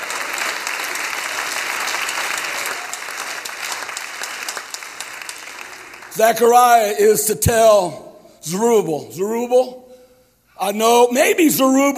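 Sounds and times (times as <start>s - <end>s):
audience clapping hands: 0.0s - 6.6s
speech: 6.2s - 9.8s, 10.6s - 11.9s.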